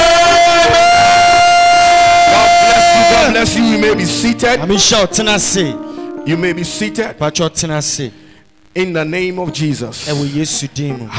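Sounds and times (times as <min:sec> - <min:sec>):
audience shouting a loud amen: 0:00.0 - 0:04.0
speech: 0:04.0 - 0:11.1.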